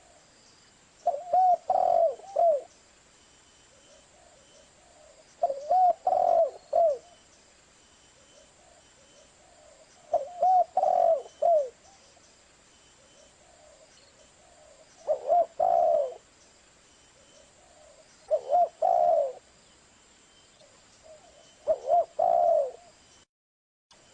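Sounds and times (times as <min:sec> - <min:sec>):
spotted dove cooing: 0:01.0 - 0:02.7, 0:03.7 - 0:07.2, 0:08.2 - 0:12.2, 0:13.0 - 0:16.3, 0:17.2 - 0:19.5, 0:20.6 - 0:23.0.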